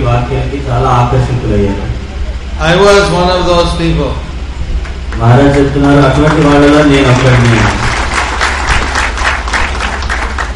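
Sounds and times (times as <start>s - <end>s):
speech: 0.2s - 1.9s, 2.6s - 4.2s, 5.2s - 7.9s
audience applause: 4.8s - 10.5s.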